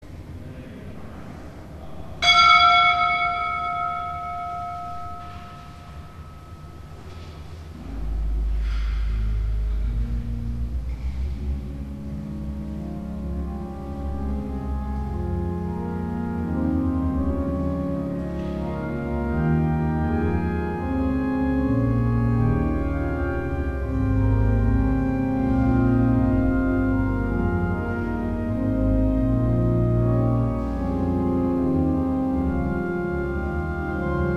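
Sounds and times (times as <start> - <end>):
organ: 2.4 - 34.3.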